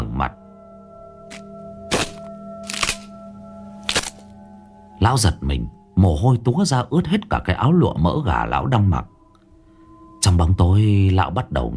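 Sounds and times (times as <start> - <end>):
tree branch snapping: 1.3 - 3.1, 3.8 - 4.3
speech: 5.0 - 9.1, 10.2 - 11.7.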